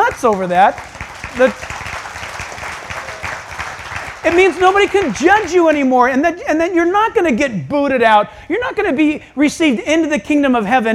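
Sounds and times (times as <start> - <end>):
audience clapping: 0.0 - 5.9
speech: 0.2 - 1.8, 4.2 - 10.9.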